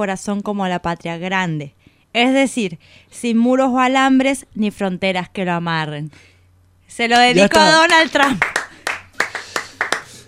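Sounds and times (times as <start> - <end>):
speech: 0.0 - 6.3, 6.9 - 8.6
applause sound effect of sparse hand claps: 7.8 - 10.2.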